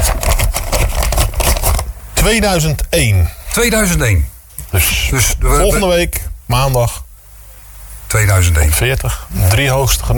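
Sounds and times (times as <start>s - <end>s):
small paper lottery slip being unfolded: 0.0s - 1.9s
speech: 2.2s - 7.0s, 8.1s - 10.1s.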